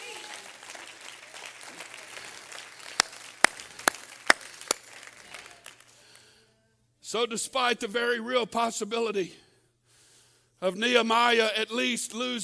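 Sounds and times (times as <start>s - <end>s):
audience clapping hands: 0.0s - 6.4s
speech: 7.1s - 9.4s, 10.6s - 12.4s.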